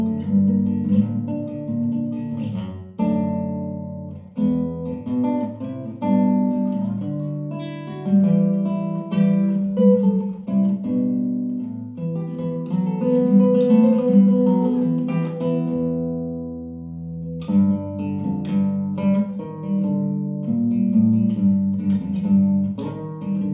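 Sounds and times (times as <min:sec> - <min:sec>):
nylon-string guitar: 0:00.0 - 0:23.5.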